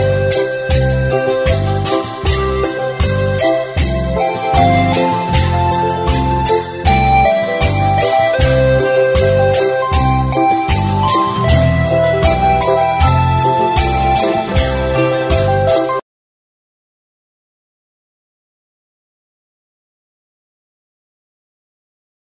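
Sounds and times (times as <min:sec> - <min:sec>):
mua roi beat: 0:00.0 - 0:16.0.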